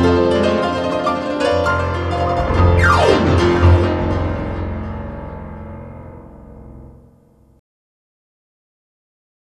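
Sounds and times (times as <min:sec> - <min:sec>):
blues piano: 0:00.0 - 0:07.5.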